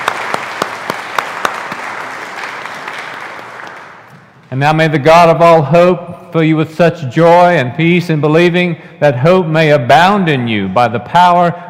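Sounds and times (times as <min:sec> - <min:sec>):
audience applause: 0:00.0 - 0:04.4
speech: 0:04.5 - 0:11.6.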